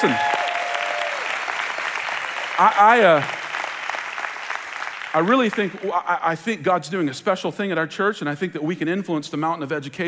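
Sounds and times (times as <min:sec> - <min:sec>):
speech: 0:00.0 - 0:00.3, 0:02.6 - 0:03.4, 0:05.2 - 0:10.0
crowd applause: 0:00.0 - 0:06.0.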